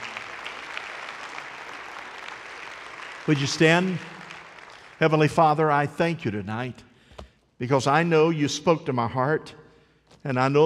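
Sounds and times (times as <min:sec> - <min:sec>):
audience clapping: 0:00.0 - 0:06.0
speech: 0:03.3 - 0:04.2, 0:05.0 - 0:06.9, 0:07.6 - 0:09.6, 0:10.2 - 0:10.6.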